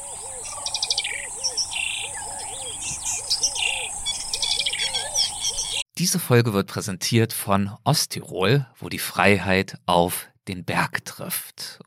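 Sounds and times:
dawn bird chorus in grass savanna: 0.0s - 5.8s
speech: 6.0s - 11.8s.

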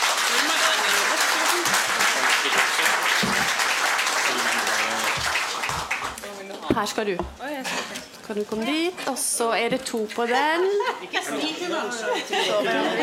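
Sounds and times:
audience applause: 0.0s - 6.2s
laughter: 0.4s - 2.6s, 10.4s - 13.0s
speech: 6.8s - 13.0s.

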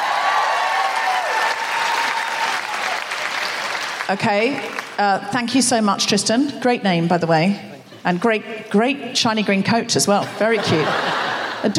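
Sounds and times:
audience applause: 0.0s - 5.0s
speech: 4.1s - 11.7s
laughter: 10.2s - 11.7s.

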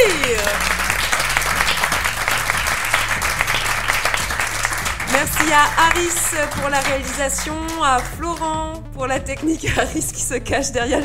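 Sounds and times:
laughter: 0.0s - 8.5s, 9.3s - 11.0s
room full of people clapping: 0.0s - 8.8s
low humming musical tone: 0.0s - 11.0s
speech: 5.5s - 11.0s.

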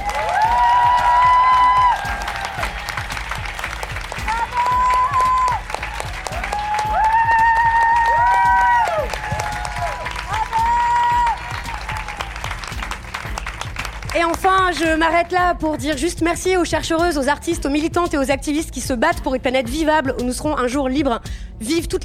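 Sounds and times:
thunderous applause: 0.0s - 14.4s
speech: 14.7s - 22.0s.

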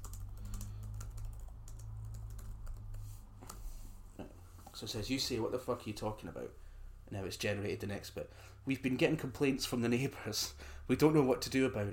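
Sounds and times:
typing on a computer keyboard: 0.0s - 3.0s
speech: 4.2s - 11.9s.

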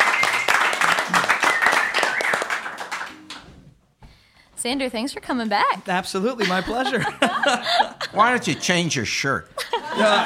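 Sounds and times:
people cheering: 0.0s - 3.3s
audience applause welcoming a musical guest onto a show: 0.0s - 3.4s
speech: 4.6s - 10.2s
laughter: 6.4s - 9.0s, 9.6s - 10.2s.

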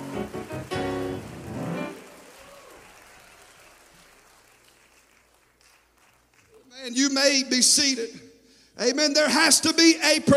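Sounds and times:
audience clapping hands: 0.0s - 7.0s
speech: 6.8s - 10.3s.

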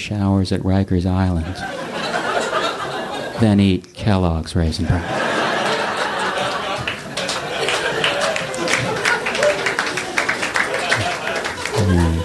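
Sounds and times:
speech: 0.0s - 1.8s, 3.4s - 5.2s
laughter: 1.3s - 3.8s, 4.8s - 12.2s
audience applauding: 5.2s - 12.2s.

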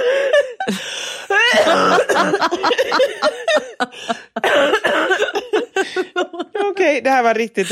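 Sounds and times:
gasping breaths: 0.0s - 2.1s, 3.8s - 4.4s
laughter: 0.1s - 7.0s
person coughing: 1.4s - 3.4s, 4.4s - 5.7s
speech: 2.2s - 5.1s, 7.0s - 7.7s.

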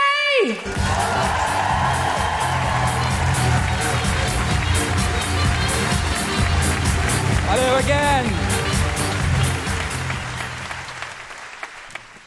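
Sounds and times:
crowd clapping and cheering: 0.3s - 12.2s
speech: 0.4s - 1.4s, 7.5s - 8.5s
low rhythmic musical backing: 0.6s - 11.2s
scattered whoops: 0.7s - 4.6s.

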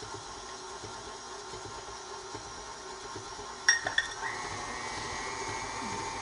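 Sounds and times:
electric mixer running while sugar is added: 0.0s - 6.2s.

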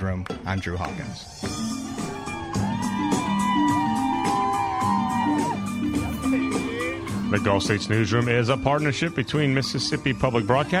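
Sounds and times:
speech: 0.0s - 1.8s, 7.3s - 10.7s
parade crowd cheering and whooping: 1.4s - 8.0s
lively band music: 1.4s - 10.7s.

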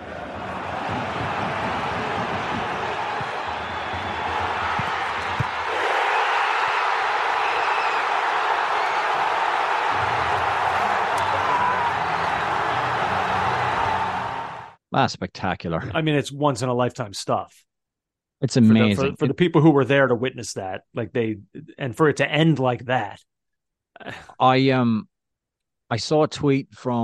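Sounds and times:
football stadium crowd cheering after winning goal: 0.0s - 14.8s
speech: 15.0s - 17.7s, 18.4s - 23.3s, 24.0s - 25.1s, 25.9s - 27.0s.

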